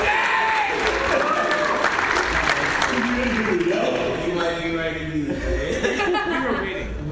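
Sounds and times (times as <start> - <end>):
audience applause as a guest is introduced: 0.0 - 4.3
laughter: 5.2 - 7.0.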